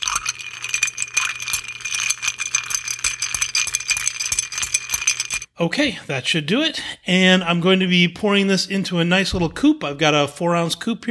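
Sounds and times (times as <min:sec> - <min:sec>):
ice clinking in a mixing glass as a cocktail is stirred: 0:00.0 - 0:05.5
speech: 0:05.6 - 0:11.0.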